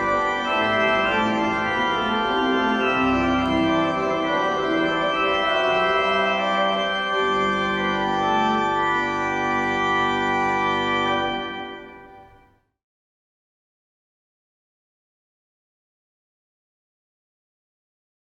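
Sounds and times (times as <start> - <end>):
organ piece: 0.0 - 12.5.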